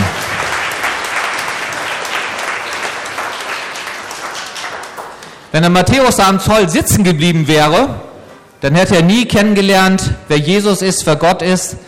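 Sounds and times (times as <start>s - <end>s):
audience applause: 0.0s - 5.4s
speech: 5.6s - 8.0s, 8.6s - 11.8s.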